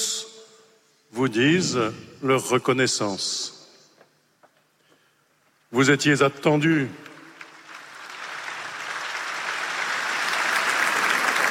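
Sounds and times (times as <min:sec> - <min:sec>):
speech: 0:01.1 - 0:03.6, 0:05.7 - 0:07.1
stadium crowd applause: 0:07.3 - 0:11.4.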